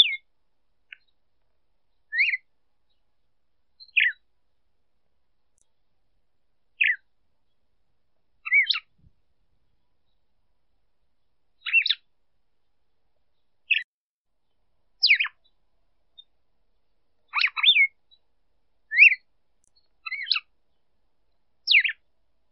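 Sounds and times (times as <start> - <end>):
female red-cowled cardinal calling: 0.0 - 0.3, 2.0 - 3.0, 3.8 - 4.2, 6.8 - 7.6, 8.4 - 9.1, 11.6 - 12.1, 13.4 - 13.9, 15.0 - 15.6, 17.3 - 18.2, 18.9 - 20.5, 21.6 - 22.0.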